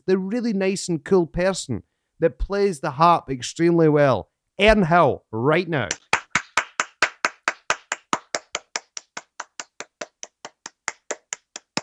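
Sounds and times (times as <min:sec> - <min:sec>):
speech: 0:00.0 - 0:06.0
person clapping: 0:05.9 - 0:11.8.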